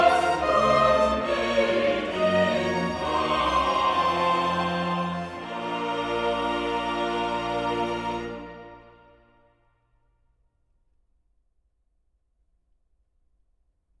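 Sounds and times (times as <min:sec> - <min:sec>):
choral cantata: 0:00.0 - 0:09.3.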